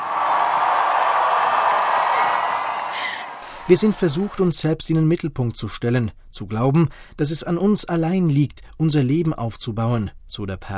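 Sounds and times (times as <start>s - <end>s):
sustained applause from a large crowd: 0.0s - 4.3s
speech: 3.7s - 10.7s.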